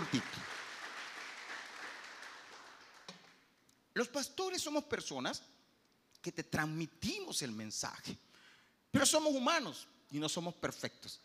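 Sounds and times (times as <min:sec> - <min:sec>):
audience applauding: 0:00.0 - 0:03.4
speech: 0:00.1 - 0:00.4, 0:04.0 - 0:05.6, 0:06.2 - 0:08.2, 0:08.9 - 0:11.2.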